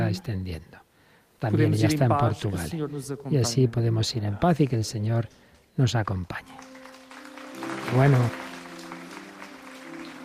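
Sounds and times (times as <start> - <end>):
speech: 0.1 - 0.8, 1.4 - 6.7, 7.9 - 8.4
large audience applause: 6.4 - 10.2.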